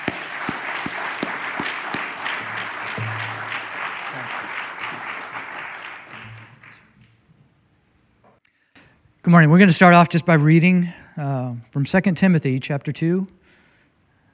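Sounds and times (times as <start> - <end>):
Hanover Baptist church congregation applauding to welcome guest missionaries: 0.0 - 6.9
speech: 9.3 - 13.4.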